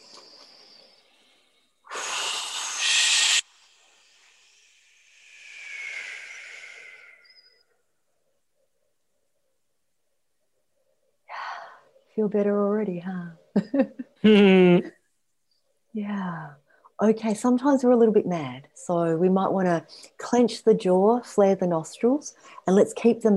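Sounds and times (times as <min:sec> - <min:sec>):
whooshing exhale breath: 0:00.0 - 0:07.6
speech: 0:12.2 - 0:15.0, 0:16.0 - 0:23.3.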